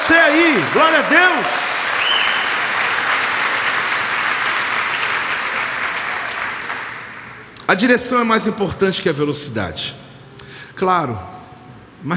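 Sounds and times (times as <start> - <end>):
audience applause: 0.0 - 7.5
speech: 0.1 - 1.7, 7.7 - 10.0, 10.8 - 11.3.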